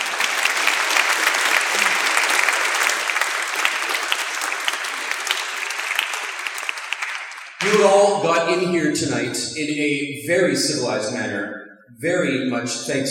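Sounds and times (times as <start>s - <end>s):
crowd applause: 0.0s - 8.2s
speech: 7.8s - 13.0s.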